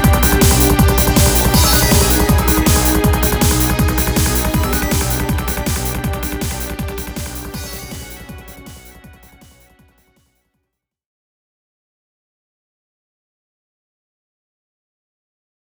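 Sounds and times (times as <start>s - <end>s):
tension music: 0.0s - 9.9s.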